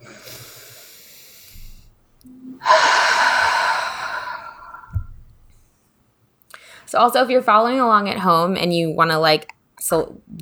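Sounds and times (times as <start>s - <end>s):
group taking a deep breath during a guided breathing exercise: 0.0s - 5.6s, 6.5s - 6.9s
speech: 6.9s - 10.4s.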